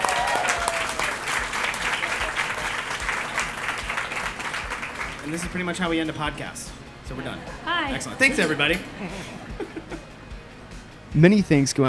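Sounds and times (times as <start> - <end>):
live audience applause at an Atlanta interview taping honouring a chef: 0.0 - 5.7
speech: 5.3 - 9.9, 11.2 - 11.8
laughter: 7.1 - 10.2.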